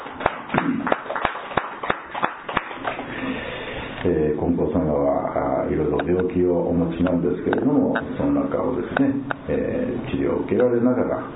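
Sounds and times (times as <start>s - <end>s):
audience applause: 0.0s - 3.1s
speech: 4.0s - 11.3s.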